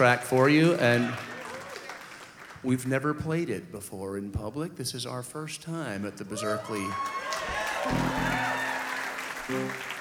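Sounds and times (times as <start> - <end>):
speech: 0.0 - 1.3, 2.6 - 7.2, 7.8 - 8.2, 9.5 - 9.9
audience clapping: 0.0 - 3.0, 6.4 - 9.9.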